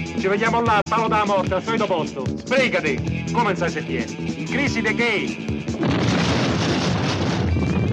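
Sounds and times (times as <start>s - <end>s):
speech: 0.2s - 6.0s
bomb explosion: 5.8s - 7.9s.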